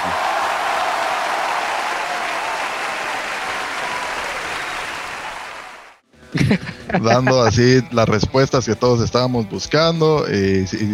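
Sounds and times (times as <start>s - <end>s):
recorded ovation applause effect: 0.0s - 6.0s
laughter: 6.2s - 8.4s
speech: 6.4s - 10.9s.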